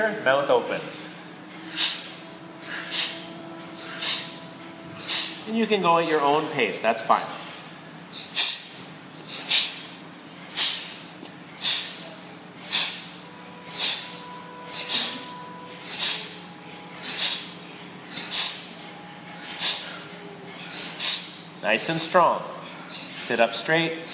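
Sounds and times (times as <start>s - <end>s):
speech: 0.0s - 1.0s, 5.5s - 7.4s, 21.7s - 22.6s, 23.2s - 24.1s
forceful exhales in a breathing exercise: 1.0s - 4.4s, 5.0s - 5.4s, 8.1s - 21.4s.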